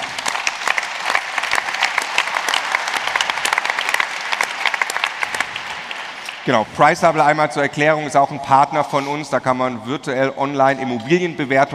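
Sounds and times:
audience applause: 0.0s - 7.2s
speech: 6.4s - 11.7s.

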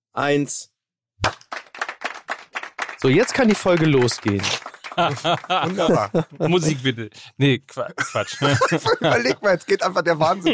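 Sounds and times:
speech: 0.2s - 1.4s, 3.0s - 10.5s
hand clap to sync audio tracks: 1.2s - 6.1s
laughter: 3.8s - 7.0s, 7.8s - 10.5s.

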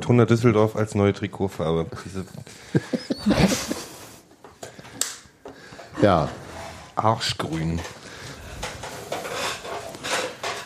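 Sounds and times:
speech: 0.1s - 3.9s, 6.0s - 6.4s, 7.0s - 8.0s
laughter: 2.2s - 4.1s
chairs creaking: 2.9s - 10.6s.

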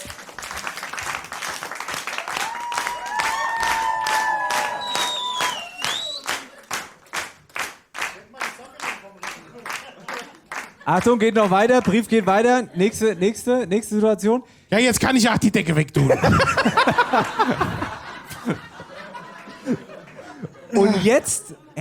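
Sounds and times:
audience clapping in rhythm: 0.0s - 12.5s, 16.6s - 20.6s
laughter: 6.0s - 7.0s, 9.1s - 13.7s, 16.0s - 21.7s
speech: 10.9s - 17.8s, 18.4s - 18.7s, 20.8s - 21.7s.

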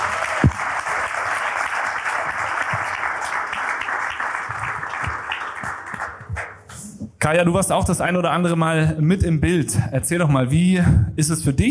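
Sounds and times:
audience applause: 0.0s - 6.7s
speech: 7.2s - 11.6s.

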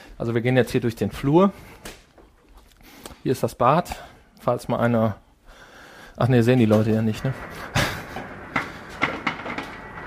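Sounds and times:
speech: 0.2s - 1.8s, 3.2s - 5.2s, 6.2s - 7.6s
ice cube machine clattering as cubes drop: 6.7s - 10.0s.

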